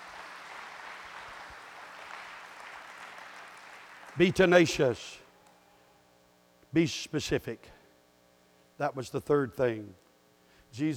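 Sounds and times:
audience applause: 0.0s - 4.7s
speech: 4.2s - 5.2s, 6.7s - 7.8s, 8.8s - 10.0s, 10.7s - 10.9s.

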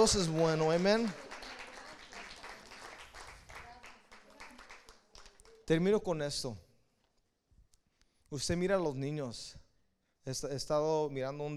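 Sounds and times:
speech: 0.0s - 1.2s, 5.7s - 6.6s, 8.3s - 9.6s, 10.2s - 11.5s
audience applause: 0.0s - 5.7s.

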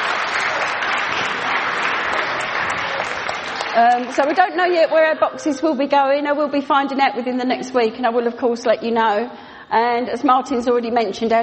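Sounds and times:
audience applause: 0.0s - 4.9s
speech: 3.8s - 11.4s.

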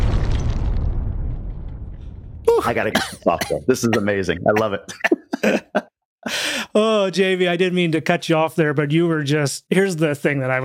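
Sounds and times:
bomb explosion sound effect: 0.0s - 3.0s
laughter: 2.5s - 5.9s
speech: 2.6s - 10.6s.

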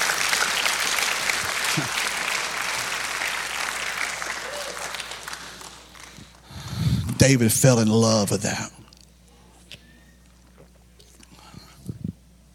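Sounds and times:
audience hand clapping applause: 0.0s - 6.6s
speech: 1.8s - 2.0s, 7.2s - 8.8s.

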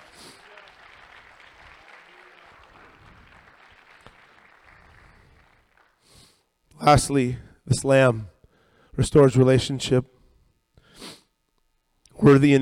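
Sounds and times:
audience applause: 0.0s - 6.1s
speech: 6.8s - 8.3s, 9.0s - 10.2s, 12.2s - 12.6s.

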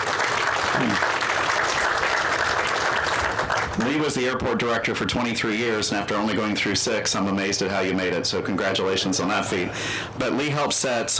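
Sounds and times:
audience applause: 0.0s - 3.9s
speech: 3.8s - 11.1s.

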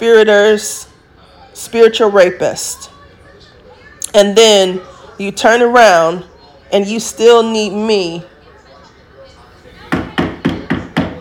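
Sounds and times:
speech: 0.0s - 0.9s, 1.6s - 2.9s, 4.1s - 8.3s
knocking on wood: 9.9s - 11.1s.

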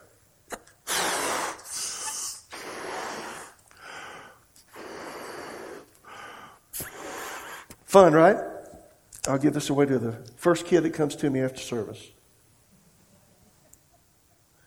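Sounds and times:
person blowing air into a balloon: 0.6s - 3.6s, 4.7s - 5.9s, 6.7s - 7.7s
quick inhale: 0.9s - 7.7s
speech: 7.9s - 8.5s, 9.3s - 12.2s.

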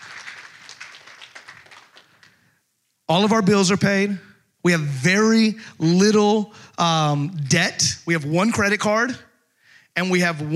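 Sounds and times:
audience clapping: 0.0s - 2.5s
speech: 3.1s - 9.3s, 10.0s - 10.5s.

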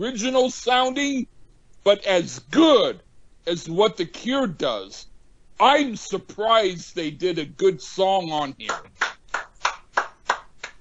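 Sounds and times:
speech: 0.0s - 9.0s
hands clapping close to the microphone: 8.6s - 10.7s.

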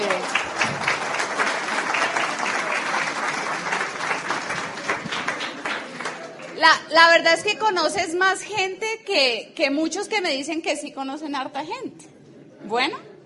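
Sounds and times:
audience applause: 0.0s - 6.6s
speech: 6.6s - 12.1s, 12.7s - 13.0s.

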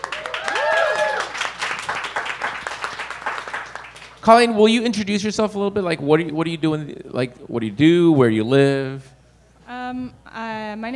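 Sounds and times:
audience applause: 0.0s - 4.3s
speech: 4.2s - 9.2s, 9.9s - 10.9s.

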